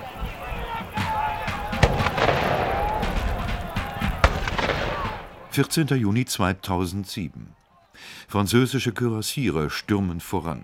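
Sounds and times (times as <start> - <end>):
cannon fire at battle reenactment: 1.6 - 5.5
speech: 5.6 - 10.6.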